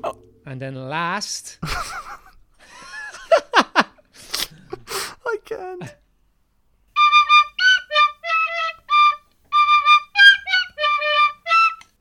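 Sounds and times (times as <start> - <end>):
speech: 0.0 - 2.0, 5.5 - 6.0
tin whistle tune: 7.0 - 11.9.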